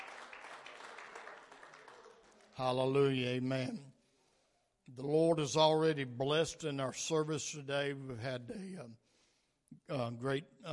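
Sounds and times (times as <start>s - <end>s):
audience hand clapping: 0.0s - 3.1s
speech: 2.6s - 4.0s, 4.9s - 9.0s, 9.8s - 10.7s.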